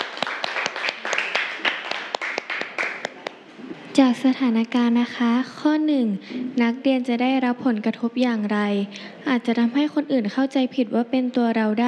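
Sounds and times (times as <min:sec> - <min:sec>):
classroom applause: 0:00.0 - 0:03.4
speech: 0:04.0 - 0:11.8.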